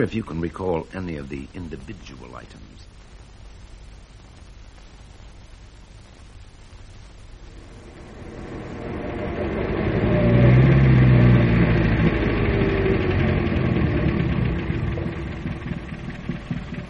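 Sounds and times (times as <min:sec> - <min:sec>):
speech: 0:00.0 - 0:02.9
car engine rumbling as the car arrives: 0:07.4 - 0:16.8.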